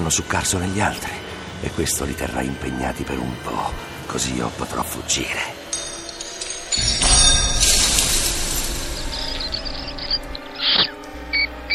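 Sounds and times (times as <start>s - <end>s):
speech: 0.1s - 5.6s
metallic clatter of cage: 5.7s - 9.7s
rats squeaking and squealing: 8.0s - 11.7s.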